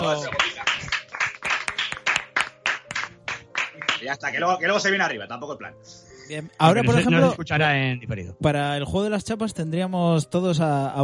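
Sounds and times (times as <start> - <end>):
speech: 0.0 - 0.6, 4.0 - 11.0
audience applause for a guest: 0.0 - 4.2.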